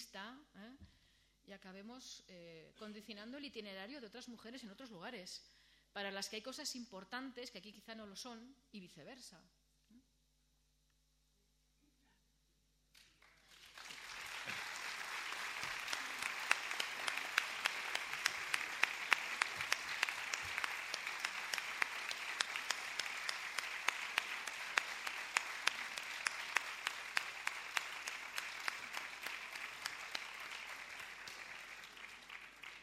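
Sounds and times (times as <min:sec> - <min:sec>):
speech: 0:01.5 - 0:09.6
warm loud audience applause: 0:13.0 - 0:32.8.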